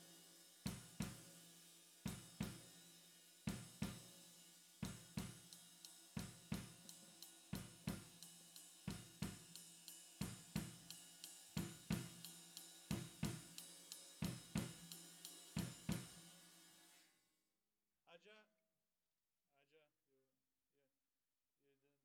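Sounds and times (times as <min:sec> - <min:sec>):
snare drum: 0:00.0 - 0:04.2, 0:04.8 - 0:16.9.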